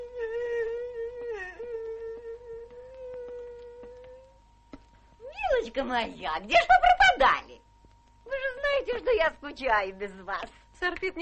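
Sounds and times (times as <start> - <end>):
woman whimpering and sobbing: 0.0 - 4.3
speech: 5.7 - 7.6, 8.8 - 11.2.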